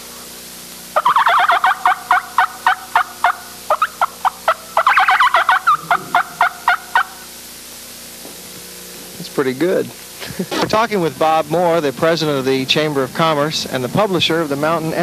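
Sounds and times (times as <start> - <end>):
turkey cackle hunting call: 1.0 - 7.3
speech: 9.4 - 15.0.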